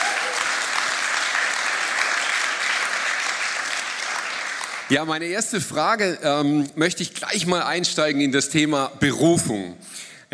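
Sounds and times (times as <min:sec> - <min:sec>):
sustained applause from a crowd: 0:00.0 - 0:05.0
speech: 0:04.9 - 0:10.1.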